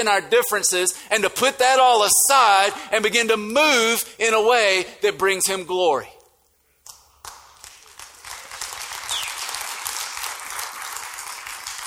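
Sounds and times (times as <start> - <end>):
speech: 0.0 - 6.2
crowd applauding: 6.9 - 11.8.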